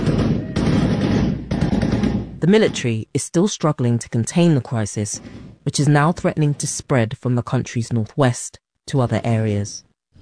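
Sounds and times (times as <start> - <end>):
gunshots in a village in northwest Nigeria: 0.0 - 2.4
speech: 2.4 - 9.9.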